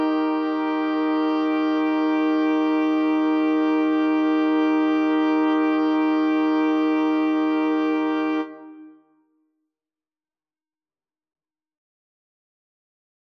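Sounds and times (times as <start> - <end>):
wind quartet playing: 0.0 - 8.9.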